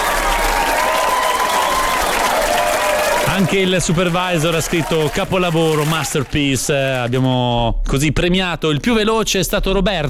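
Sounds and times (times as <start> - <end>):
studio audience applause: 0.0 - 7.7
speech: 3.4 - 10.0.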